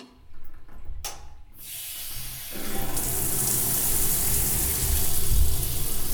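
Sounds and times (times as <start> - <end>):
hair being shampooed during a head spa: 1.6 - 6.1.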